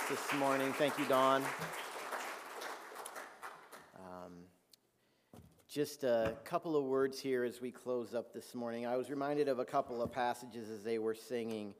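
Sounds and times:
audience applause for a choir: 0.0s - 3.9s
speech: 0.1s - 1.8s, 5.7s - 11.7s.

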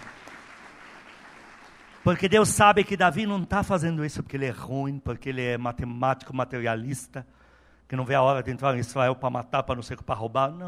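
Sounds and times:
applause: 0.0s - 2.9s
speech: 2.0s - 10.6s.

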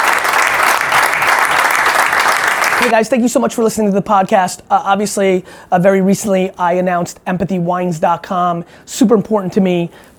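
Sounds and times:
audience applause: 0.0s - 2.9s
speech: 2.8s - 10.1s.

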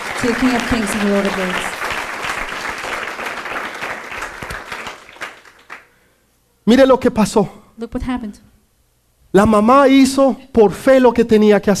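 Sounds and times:
audience applauding: 0.0s - 6.0s
speech: 0.2s - 1.8s, 6.7s - 8.5s, 9.3s - 11.7s.

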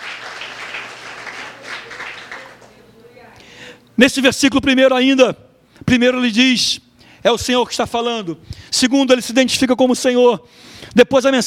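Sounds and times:
audience applause: 0.0s - 2.8s
speech: 4.0s - 11.4s.

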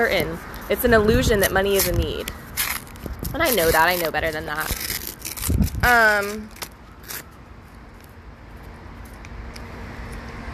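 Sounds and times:
speech: 0.0s - 2.5s, 3.3s - 6.6s
ice cream wrapper crinkling as it is unwrapped at the beach: 1.8s - 7.3s.

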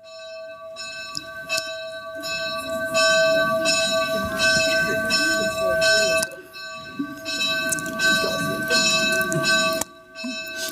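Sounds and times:
church bell striking the hour: 0.0s - 10.7s.

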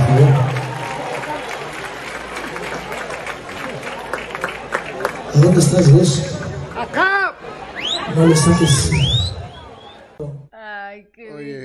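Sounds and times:
studio audience applauding: 0.0s - 6.0s
speech: 5.6s - 7.1s, 8.2s - 9.0s.

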